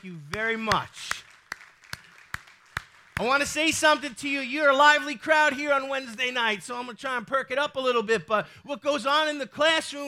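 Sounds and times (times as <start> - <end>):
speech: 0.0 - 1.2, 3.2 - 10.0
audience clapping: 0.0 - 4.1.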